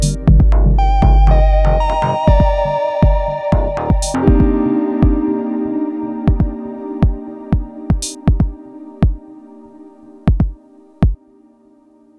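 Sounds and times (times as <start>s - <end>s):
analog drum machine: 0.0s - 5.3s, 6.3s - 9.2s, 10.3s - 11.2s.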